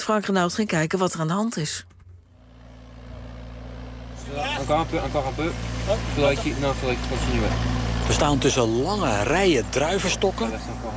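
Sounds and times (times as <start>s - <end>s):
speech: 0.0s - 2.0s, 4.3s - 10.9s
excavator driving between rows of grapevines in a French vineyard: 1.6s - 10.9s.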